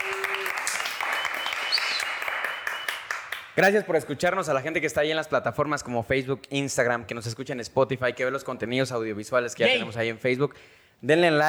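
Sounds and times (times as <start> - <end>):
audience applause: 0.0 - 3.6
speech: 3.6 - 11.4.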